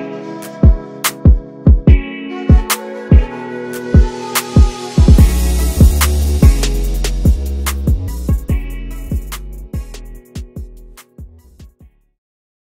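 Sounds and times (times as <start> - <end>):
trap beat instrumental: 0.4 - 11.9.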